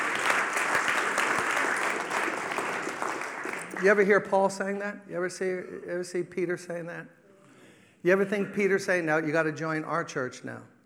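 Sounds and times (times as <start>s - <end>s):
audience clapping hands: 0.0s - 4.4s
speech: 3.8s - 7.2s, 8.0s - 10.7s.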